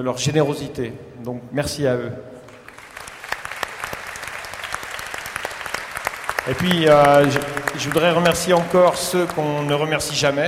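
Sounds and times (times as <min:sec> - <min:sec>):
speech: 0:00.0 - 0:02.4, 0:06.4 - 0:10.4
audience applause: 0:02.5 - 0:10.4.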